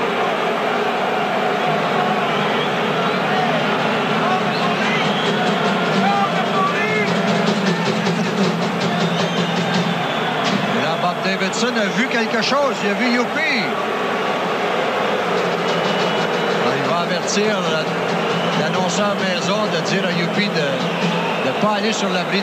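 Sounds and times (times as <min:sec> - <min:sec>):
large baseball stadium crowd cheering and shouting: 0:00.0 - 0:22.4
shrill whistles from baseball stadium crowd: 0:04.5 - 0:05.6, 0:08.8 - 0:10.7, 0:15.6 - 0:16.7, 0:20.7 - 0:22.1
speech: 0:12.4 - 0:13.7, 0:17.3 - 0:22.4.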